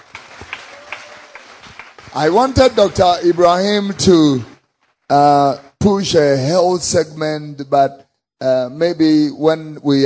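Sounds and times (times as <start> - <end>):
audience clapping hands: 0.0 - 5.4
speech: 2.1 - 4.5, 5.1 - 10.0.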